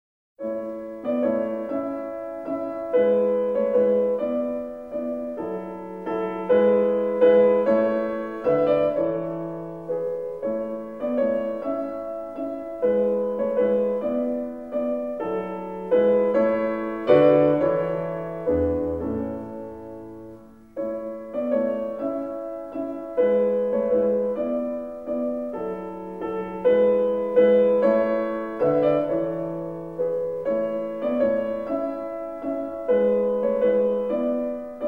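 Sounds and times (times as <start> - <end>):
piano sonata: 0.4 - 34.8.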